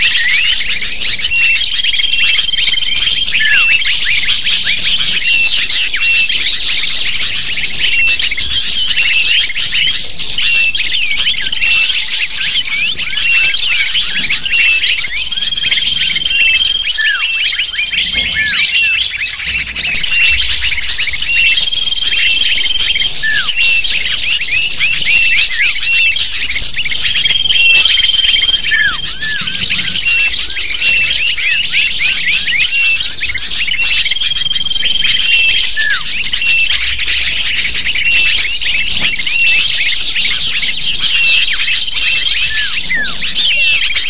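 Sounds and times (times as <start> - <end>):
lovebird flock chattering: 0.0 - 44.0
steady high whistles: 0.0 - 44.0.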